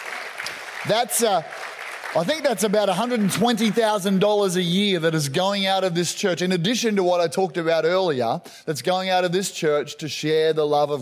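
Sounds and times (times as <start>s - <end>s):
audience applause: 0.0s - 4.2s
speech: 0.8s - 11.0s.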